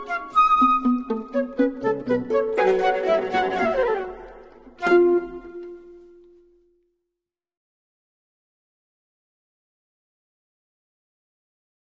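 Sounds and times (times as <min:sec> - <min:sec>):
trio for flute viola and harp: 0:00.0 - 0:06.4.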